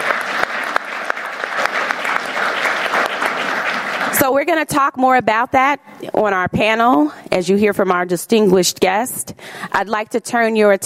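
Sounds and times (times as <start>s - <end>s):
audience applause: 0.0s - 4.2s
speech: 4.2s - 10.8s.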